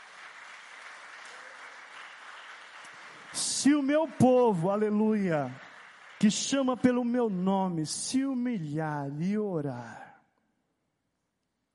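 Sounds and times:
audience applause: 0.0 - 7.8
speech: 3.3 - 5.6, 6.2 - 10.1.

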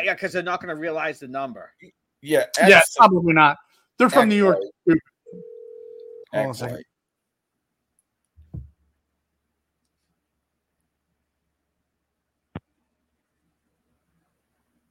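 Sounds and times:
speech: 0.0 - 5.5, 6.3 - 6.9
telephone dial tone: 5.3 - 6.3.

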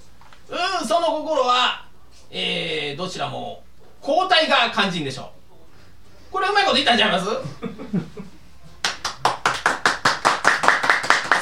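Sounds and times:
speech: 0.9 - 5.4, 6.4 - 8.3
laughter: 7.4 - 8.5
sparse applause from a small audience: 8.8 - 11.4.

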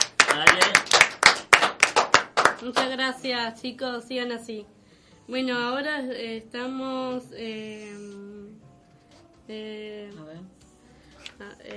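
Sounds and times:
studio applause: 0.0 - 2.9
speech: 2.6 - 8.3, 9.5 - 10.6, 11.4 - 11.7.

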